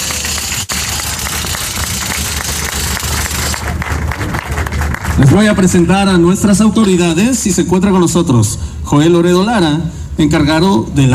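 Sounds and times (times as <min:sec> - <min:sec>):
audience applause: 0:00.0 - 0:05.6
speech: 0:05.2 - 0:11.1.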